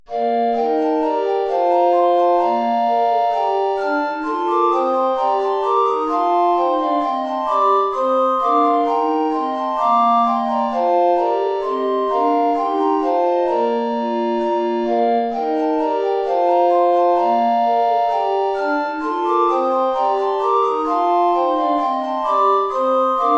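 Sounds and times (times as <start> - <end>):
four recorders SATB playing: 0.1 - 23.3.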